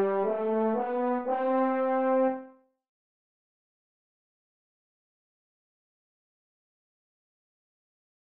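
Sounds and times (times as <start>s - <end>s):
F horn playing lyrical etudes slowly in C: 0.0s - 2.6s.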